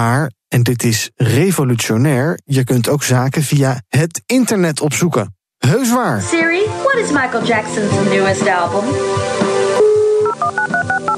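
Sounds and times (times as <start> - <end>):
speech: 0.0 - 9.3
dial-up modem dial tone: 9.8 - 11.1.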